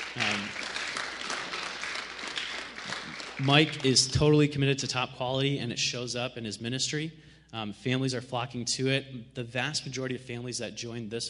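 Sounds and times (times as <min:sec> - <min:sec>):
audience applause: 0:00.0 - 0:04.1
speech: 0:03.4 - 0:11.2.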